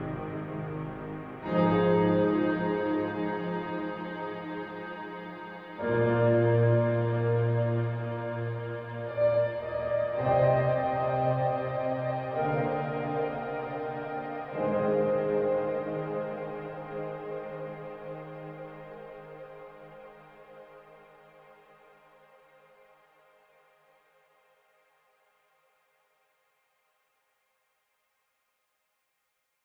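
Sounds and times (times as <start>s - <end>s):
piano with reverb: 0.0s - 20.7s.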